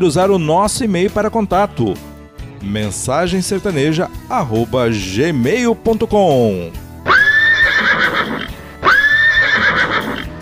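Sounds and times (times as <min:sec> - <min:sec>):
speech: 0:00.0 - 0:06.8
mascot horse Pé de Pano whinnying: 0:07.0 - 0:10.4.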